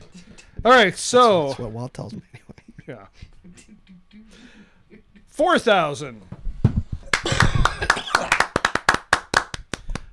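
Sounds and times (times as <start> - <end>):
laughter: 0.0 - 5.4, 7.2 - 9.4
speech: 0.6 - 4.5, 5.4 - 6.3
audience clapping: 7.1 - 10.1.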